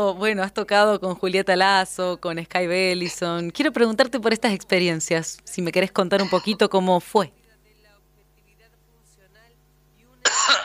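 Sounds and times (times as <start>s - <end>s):
speech: 0.0s - 7.4s
person coughing after choking on yerba mate: 6.2s - 6.6s, 10.3s - 10.6s.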